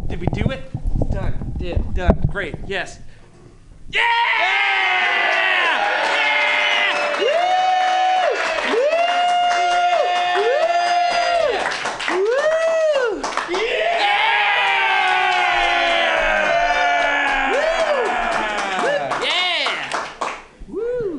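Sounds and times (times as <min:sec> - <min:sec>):
speech: 0:00.2 - 0:03.2, 0:03.9 - 0:05.4
whoops yells and shouts: 0:04.0 - 0:19.8, 0:20.7 - 0:21.1
crowd cheering: 0:04.0 - 0:20.4
dense clapping: 0:05.3 - 0:13.9, 0:14.6 - 0:20.6.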